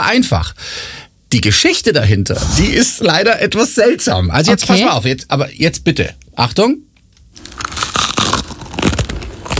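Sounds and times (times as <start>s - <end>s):
speech: 0.1s - 6.9s
someone eating crunchy food at breakfast: 7.3s - 9.5s.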